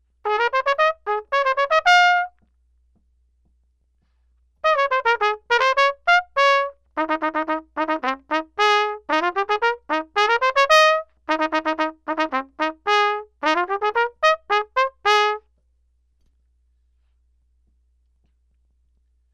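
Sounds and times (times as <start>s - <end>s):
trumpet solo of a military polka: 0.3s - 2.4s, 4.6s - 15.4s.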